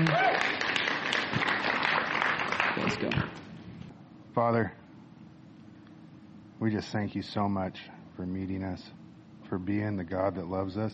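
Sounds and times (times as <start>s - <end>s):
audience applauding at a gathering: 0.0s - 3.4s
speech: 2.9s - 3.4s, 4.4s - 4.8s, 6.6s - 10.9s.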